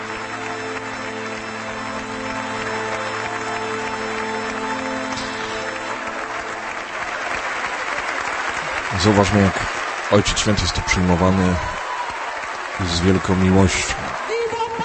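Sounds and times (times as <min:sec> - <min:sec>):
crowd applauding: 0:00.0 - 0:14.8
speech: 0:09.0 - 0:11.8, 0:12.8 - 0:14.0.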